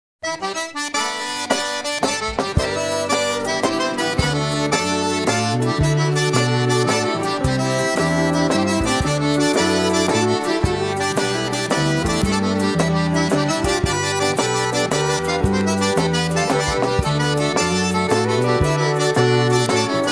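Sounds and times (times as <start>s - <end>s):
waltz music: 0.4s - 20.1s.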